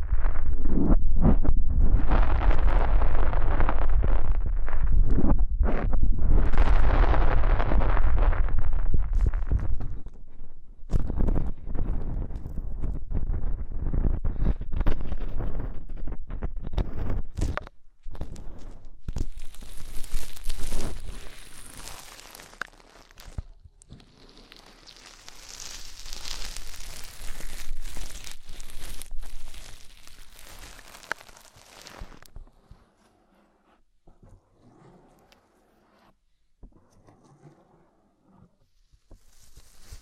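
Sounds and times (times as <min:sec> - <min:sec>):
faint sparse crackles: 0:00.0 - 0:32.4, 0:39.0 - 0:40.0
deep ear cleaning rubbing and scraping: 0:19.1 - 0:32.4, 0:39.2 - 0:40.0.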